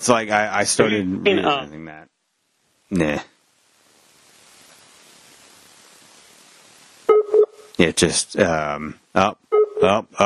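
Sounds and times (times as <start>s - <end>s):
speech: 0.0s - 2.1s, 2.9s - 3.3s, 7.8s - 10.2s
Among Us game beeps: 9.6s - 10.0s.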